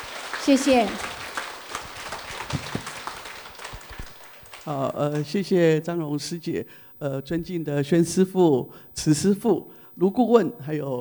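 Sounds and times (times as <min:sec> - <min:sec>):
audience applause: 0:00.0 - 0:05.3
speech: 0:00.4 - 0:01.1, 0:04.7 - 0:11.0.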